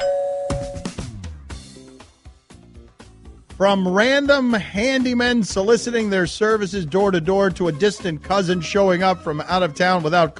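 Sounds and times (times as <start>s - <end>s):
video doorbell chime melody: 0.0s - 1.0s
speech: 3.6s - 10.3s.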